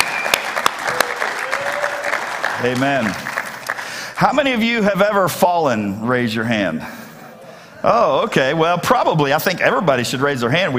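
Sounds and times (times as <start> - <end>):
church congregation applauding to welcome guests during a service: 0.0 - 4.4
speech: 2.6 - 3.2, 4.2 - 7.0, 7.8 - 10.7.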